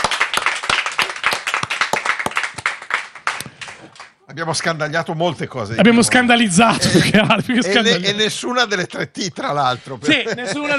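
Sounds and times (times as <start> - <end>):
audience applause: 0.0 - 4.7
speech: 4.4 - 10.7
laughter: 6.6 - 10.7.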